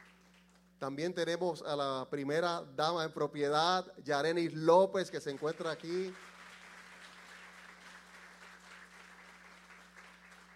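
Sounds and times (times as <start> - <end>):
audience applause: 0.0 - 0.6, 5.3 - 10.5
speech: 0.8 - 6.3.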